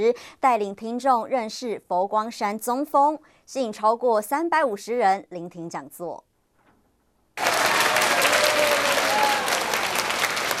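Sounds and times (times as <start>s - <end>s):
speech: 0.0s - 6.3s
audience applause welcoming a lecturer: 7.4s - 10.5s.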